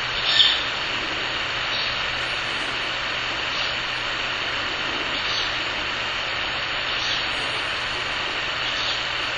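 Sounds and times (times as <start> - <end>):
Ural owl chick making hissing calls: 0.1 - 5.9, 6.8 - 9.2.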